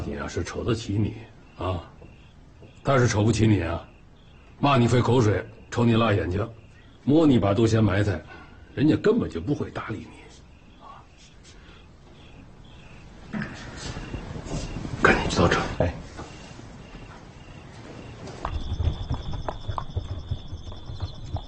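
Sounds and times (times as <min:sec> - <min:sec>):
people talking: 0:00.0 - 0:02.0, 0:02.8 - 0:03.9, 0:04.6 - 0:11.3, 0:13.3 - 0:16.1
hooves of a horse pulling a cart: 0:16.1 - 0:21.4.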